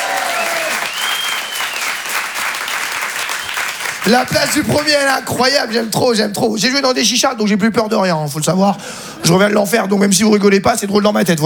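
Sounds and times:
comedy show audience clapping: 0:00.0 - 0:06.0
whistle: 0:00.4 - 0:02.1, 0:03.2 - 0:03.8
speech: 0:04.1 - 0:11.4.

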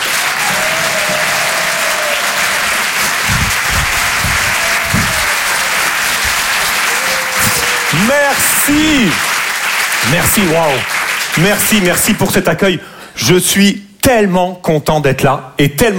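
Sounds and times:
audience applause welcoming a comedian at a comedy club: 0:00.0 - 0:12.2
speech: 0:08.0 - 0:09.3, 0:10.1 - 0:15.9.

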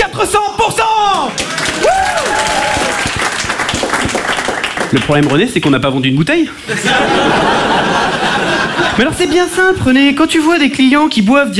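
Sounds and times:
speech: 0:00.2 - 0:00.6, 0:04.9 - 0:08.0, 0:09.0 - 0:11.5
crowd applauding: 0:01.1 - 0:05.8
laughter: 0:06.6 - 0:09.7.

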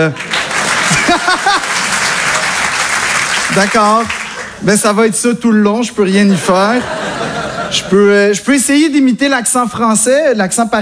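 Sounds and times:
speech: 0:00.0 - 0:00.3, 0:03.5 - 0:10.8
laughter: 0:00.0 - 0:04.6, 0:06.2 - 0:08.1
crowd applauding: 0:00.0 - 0:04.8.

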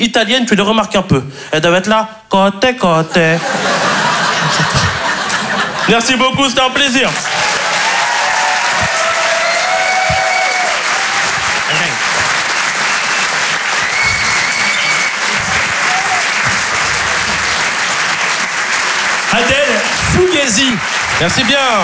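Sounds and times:
speech: 0:00.0 - 0:04.9, 0:05.9 - 0:07.3, 0:19.3 - 0:19.6, 0:20.2 - 0:21.8
laughter: 0:03.1 - 0:21.8
audience applause: 0:03.4 - 0:21.8
cheers and whoops: 0:07.2 - 0:18.4.

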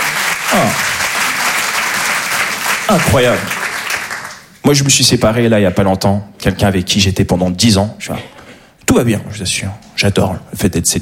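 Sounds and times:
audience applause for a couple married 51 years: 0:00.0 - 0:04.6
speech: 0:00.5 - 0:01.0, 0:02.9 - 0:03.6, 0:04.7 - 0:11.0.

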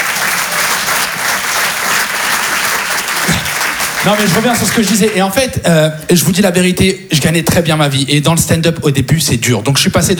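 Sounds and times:
audience applause: 0:00.0 - 0:05.4
speech: 0:04.0 - 0:10.1.

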